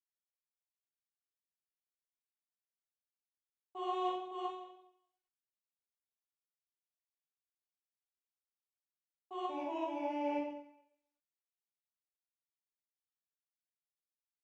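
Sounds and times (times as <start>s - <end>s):
sopranos singing: 3.8s - 4.7s, 9.3s - 10.6s.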